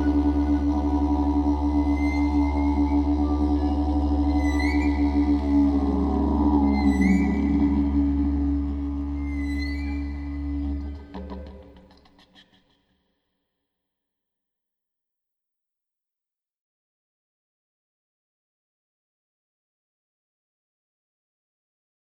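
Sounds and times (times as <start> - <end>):
improvised music: 0.0 - 12.4.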